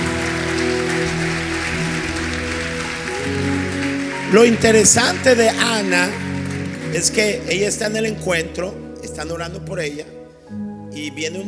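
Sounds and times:
audience applause in church: 0:00.0 - 0:07.9
speech: 0:04.3 - 0:06.2, 0:06.9 - 0:11.4.

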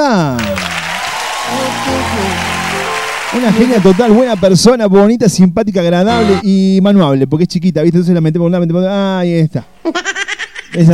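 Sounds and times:
applause: 0:00.1 - 0:04.7
laughter: 0:00.3 - 0:04.3
speech: 0:03.4 - 0:10.9.

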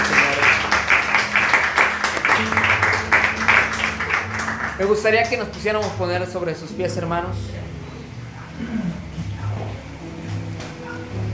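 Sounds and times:
audience applause: 0:00.0 - 0:06.0
speech: 0:04.8 - 0:07.6.

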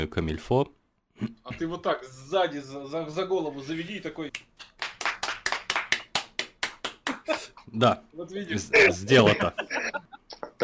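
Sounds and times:
speech: 0:00.0 - 0:04.5, 0:07.3 - 0:09.7
person clapping: 0:04.3 - 0:07.6
laughter: 0:08.6 - 0:10.6.

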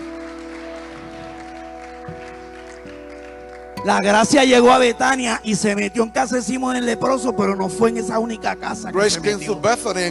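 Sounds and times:
congregation applause at a bilingual Spanish-English church service: 0:00.0 - 0:06.5
held keyboard or organ chords: 0:00.0 - 0:10.0
speech: 0:02.1 - 0:03.0, 0:03.8 - 0:10.0.

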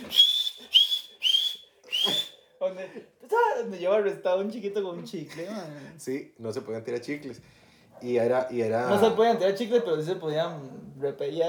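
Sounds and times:
shrill whistle blasts: 0:00.0 - 0:02.4
speech: 0:02.8 - 0:11.4.

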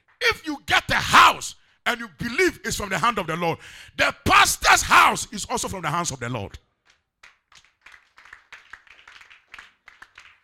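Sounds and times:
speech: 0:01.9 - 0:06.7
crowd clapping hands: 0:06.7 - 0:10.4.

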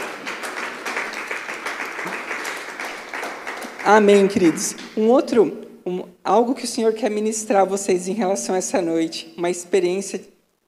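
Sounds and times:
audience applause: 0:00.0 - 0:04.9
speech: 0:03.8 - 0:10.6.

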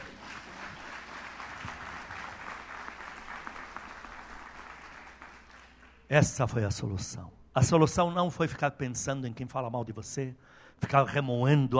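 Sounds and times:
audience applause: 0:00.0 - 0:06.1
speech: 0:06.1 - 0:11.7.

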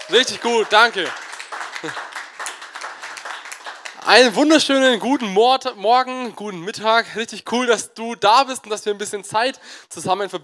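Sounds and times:
audience applause for worship team: 0:00.0 - 0:04.4
speech: 0:00.1 - 0:01.2, 0:01.8 - 0:02.1, 0:04.0 - 0:10.4.

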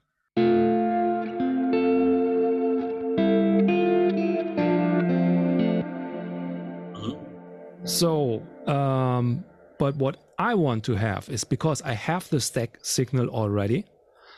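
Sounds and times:
reamped electric guitar chords with distortion, chorus and echo: 0:00.4 - 0:09.4
speech: 0:07.9 - 0:13.9.

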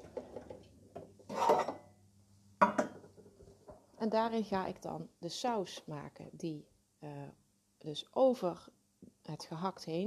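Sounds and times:
small metal saucepan clanking on a kitchen stove: 0:01.3 - 0:01.8
speech: 0:04.0 - 0:10.0.

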